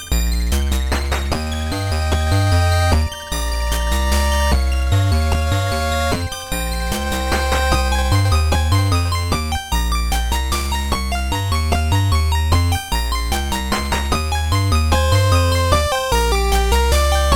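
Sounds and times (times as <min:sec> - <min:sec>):
8-bit music loop: 0:00.1 - 0:17.3.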